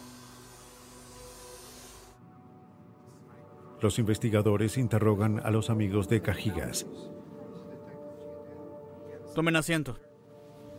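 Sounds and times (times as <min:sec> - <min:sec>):
vacuum cleaner cleaning a car interior: 0:00.0 - 0:02.2
speech: 0:03.8 - 0:07.2, 0:09.4 - 0:10.1.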